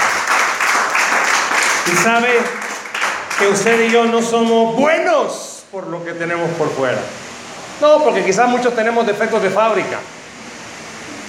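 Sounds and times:
audience applause: 0.0s - 4.1s
speech: 1.8s - 2.6s, 3.4s - 7.2s, 7.8s - 10.2s.

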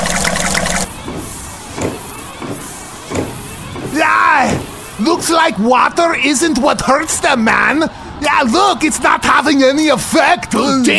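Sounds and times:
car windshield wipers running: 0.0s - 7.7s
speech: 5.0s - 10.9s.

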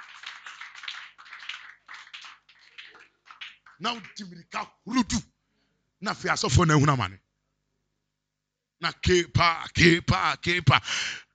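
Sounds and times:
audience clapping: 0.0s - 4.6s
speech: 3.8s - 5.3s, 6.0s - 7.2s, 8.8s - 11.2s.

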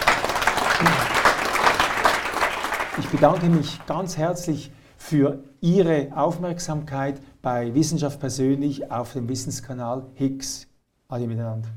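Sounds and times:
applause: 0.0s - 4.2s
speech: 3.0s - 11.7s.

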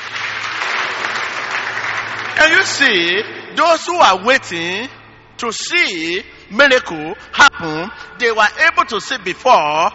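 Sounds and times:
audience clapping: 0.0s - 3.4s
speech: 2.4s - 9.9s.

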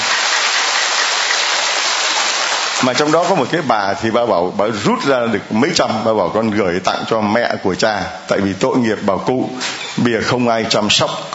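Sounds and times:
audience applauding: 0.0s - 3.4s
speech: 2.8s - 11.3s.

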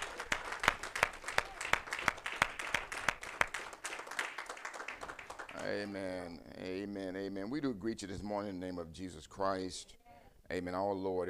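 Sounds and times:
audience clapping hands in praise: 0.0s - 6.0s
speech: 5.7s - 11.2s.

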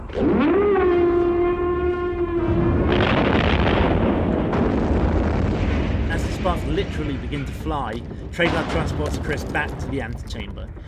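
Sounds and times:
roaring explosion: 0.0s - 10.8s
speech: 0.1s - 0.6s, 6.9s - 10.8s
horn-like blast: 0.2s - 3.4s.

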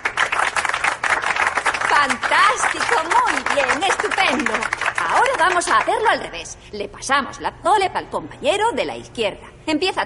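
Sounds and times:
group applauding: 0.0s - 6.1s
speech: 2.6s - 10.0s.

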